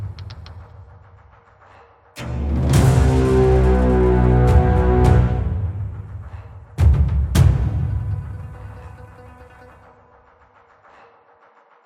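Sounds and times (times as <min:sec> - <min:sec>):
combat game music: 0:02.2 - 0:10.0.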